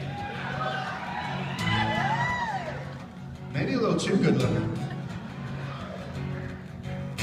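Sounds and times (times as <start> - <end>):
large crowd cheering and whooping: 0.0 - 3.4, 4.4 - 7.1
speech: 4.0 - 4.8.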